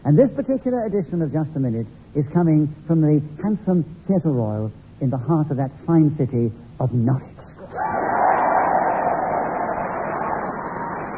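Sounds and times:
speech: 0.1s - 8.0s
theatre audience cheering and applauding in Norwich: 7.7s - 11.1s.

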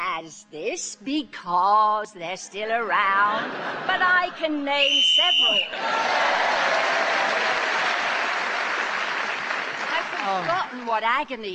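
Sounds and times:
speech: 0.2s - 7.5s, 10.2s - 11.5s
extra loud audience laughter: 3.2s - 4.6s
audience applause: 5.8s - 10.9s.

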